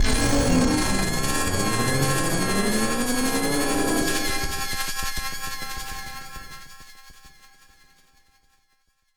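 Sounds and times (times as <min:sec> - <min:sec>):
battered synth: 0:00.0 - 0:05.0.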